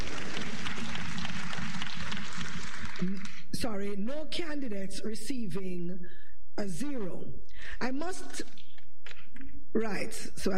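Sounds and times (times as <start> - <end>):
audience clapping: 0.0 - 3.6
speech: 3.6 - 8.6, 9.7 - 10.5.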